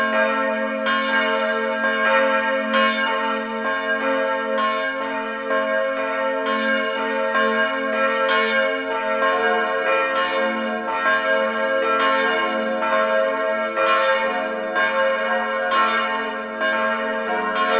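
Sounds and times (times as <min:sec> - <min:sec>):
bells ringing together: 0:00.0 - 0:17.7.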